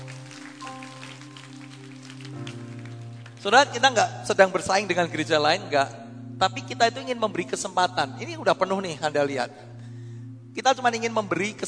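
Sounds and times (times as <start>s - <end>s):
audience applause: 0.0s - 3.4s
speech: 3.4s - 9.7s, 10.6s - 11.6s.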